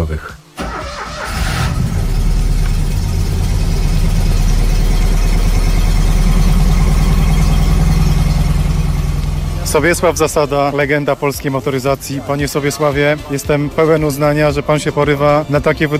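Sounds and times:
dozens of Fiat 126p car engines idling: 0:00.6 - 0:11.8
speech: 0:09.7 - 0:15.9.

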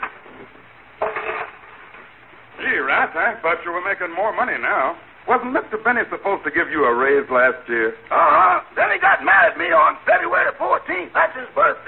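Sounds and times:
silverware being put away: 0:01.0 - 0:01.6
speech: 0:02.9 - 0:11.8.

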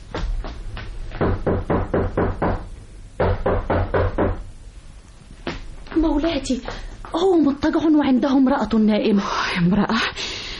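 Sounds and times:
low steady hum: 0:00.0 - 0:10.5
hard knocking on a door: 0:00.1 - 0:04.5
speech: 0:06.2 - 0:10.3.

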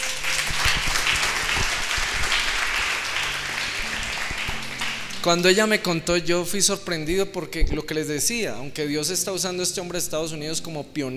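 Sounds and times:
crowd at a religious seminar applauding: 0:00.0 - 0:06.0
speech: 0:05.2 - 0:11.1.

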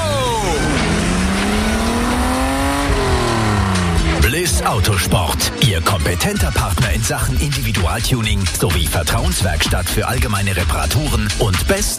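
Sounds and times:
race car number 12 engine accelerating out of the pit lane: 0:00.0 - 0:06.0
speech: 0:04.6 - 0:11.9.

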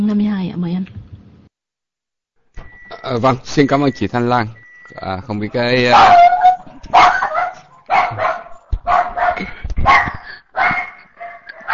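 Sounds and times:
speech: 0:00.0 - 0:01.0, 0:03.0 - 0:06.2
dog barking: 0:05.8 - 0:11.7.

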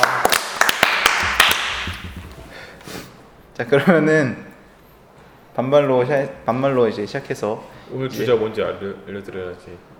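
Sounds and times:
people clapping hands: 0:00.0 - 0:02.5
speech: 0:03.6 - 0:04.5, 0:05.6 - 0:09.9.

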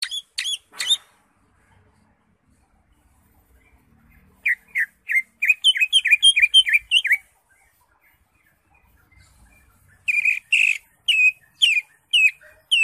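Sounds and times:
Greater Green Leafbird singing varied phrases: 0:00.0 - 0:01.1, 0:03.5 - 0:12.8.

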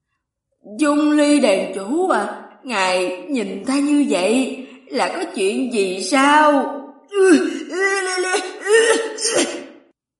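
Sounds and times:
speech: 0:00.6 - 0:07.5, 0:08.2 - 0:09.6
person coughing: 0:08.4 - 0:09.8.

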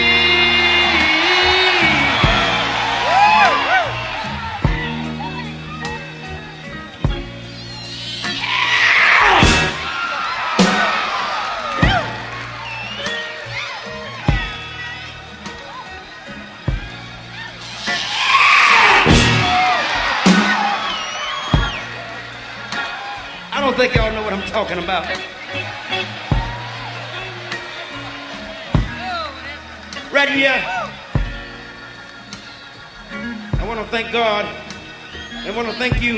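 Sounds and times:
steady rhythmic band backing with sharp percussive hits: 0:00.0 - 0:35.0
person screaming: 0:08.0 - 0:11.1, 0:17.6 - 0:20.5
speech: 0:24.6 - 0:25.7, 0:34.1 - 0:34.7, 0:35.4 - 0:36.1.

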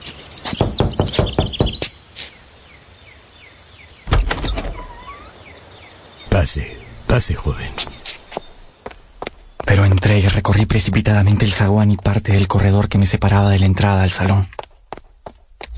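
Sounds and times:
knocking on a wooden door: 0:00.5 - 0:01.9
speech: 0:06.5 - 0:08.0, 0:09.7 - 0:14.5.

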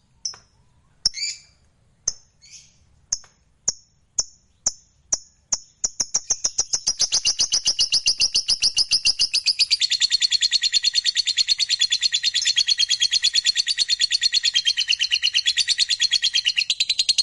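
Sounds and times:
lovebird shrill chirping: 0:01.0 - 0:01.6, 0:02.2 - 0:17.1.

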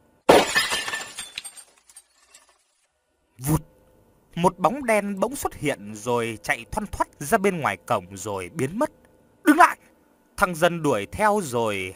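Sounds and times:
porcelain flower pot shattering: 0:00.3 - 0:02.9
speech: 0:03.4 - 0:03.7, 0:04.4 - 0:09.0, 0:10.4 - 0:11.9.

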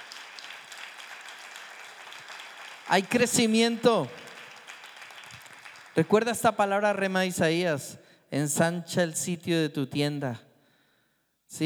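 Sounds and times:
church congregation applauding during a sermon: 0:00.0 - 0:07.2
speech: 0:02.9 - 0:04.2, 0:06.0 - 0:10.5.

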